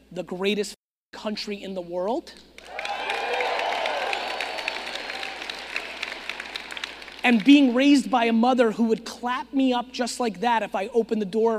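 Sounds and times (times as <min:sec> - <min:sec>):
speech: 0:00.1 - 0:02.8, 0:07.2 - 0:11.5
faint cheering: 0:02.6 - 0:06.8
audience applause: 0:02.6 - 0:07.7.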